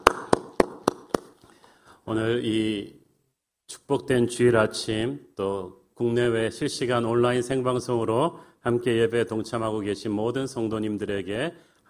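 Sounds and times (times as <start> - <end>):
group clapping in unison: 0.0 - 1.5
speech: 2.1 - 3.0, 3.7 - 11.8.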